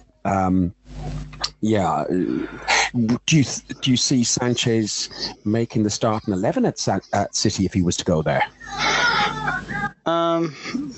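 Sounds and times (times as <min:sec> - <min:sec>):
speech: 0:00.2 - 0:00.8, 0:01.6 - 0:10.9
laughter: 0:03.0 - 0:09.8
sick toddler fussing and whimpering: 0:08.7 - 0:09.6.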